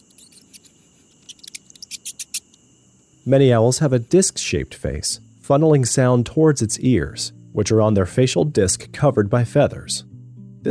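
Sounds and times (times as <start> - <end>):
mouse squeaking: 0.0 - 2.6
speech: 3.2 - 10.6.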